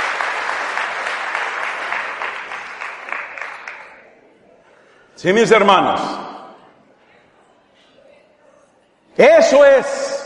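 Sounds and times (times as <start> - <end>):
audience applause: 0.0 - 4.0
speech: 5.2 - 6.3, 9.2 - 10.1.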